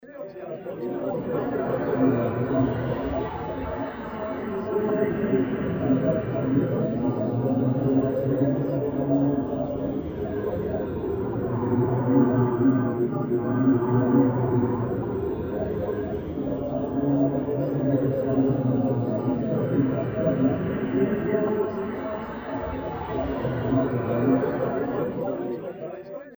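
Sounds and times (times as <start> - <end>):
vocals: 0.0 - 26.3.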